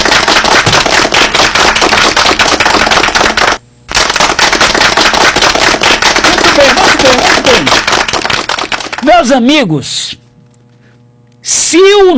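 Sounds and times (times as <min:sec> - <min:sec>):
audience applause: 0:00.0 - 0:09.1
speech: 0:09.2 - 0:10.2, 0:11.5 - 0:12.1.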